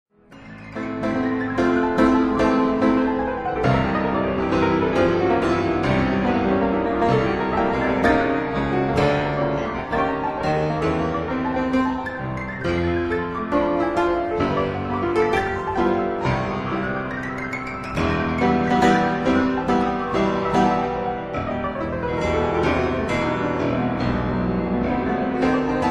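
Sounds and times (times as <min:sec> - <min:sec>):
piano etudes in A minor: 0:00.1 - 0:25.8.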